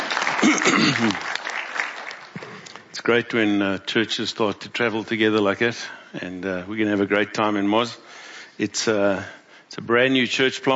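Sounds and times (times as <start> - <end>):
church congregation applauding a visiting guest: 0.0 - 3.0
speech: 0.5 - 1.4, 3.1 - 10.7.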